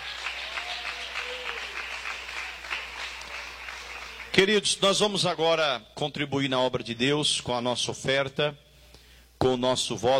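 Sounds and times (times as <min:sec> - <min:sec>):
audience applauding loudly: 0:00.0 - 0:04.5
speech: 0:04.4 - 0:08.6, 0:09.4 - 0:10.1.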